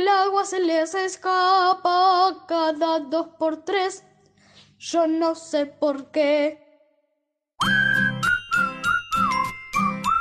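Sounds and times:
speech: 0.0 - 4.1, 4.8 - 6.6
clarinet playing: 7.6 - 10.1.

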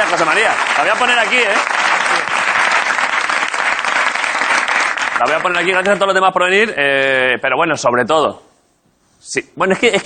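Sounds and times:
audience applause for a guest on a Spanish comedy talk show: 0.0 - 6.0
speech: 0.1 - 2.2, 5.2 - 8.5, 9.2 - 10.0.

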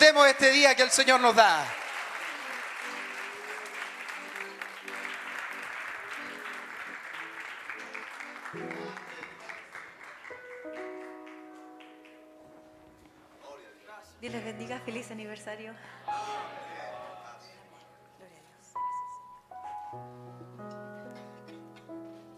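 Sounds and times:
speech: 0.0 - 1.8, 14.2 - 16.6
audience applauding: 0.0 - 12.7.

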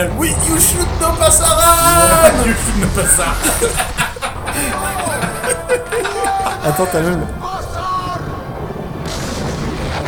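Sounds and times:
speech: 0.0 - 7.5
thunder sound effect: 0.0 - 10.0
laughter: 1.8 - 7.7.

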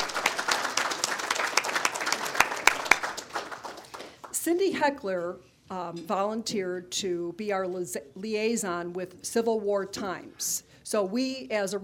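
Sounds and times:
audience applause: 0.0 - 4.2
speech: 4.5 - 11.8.

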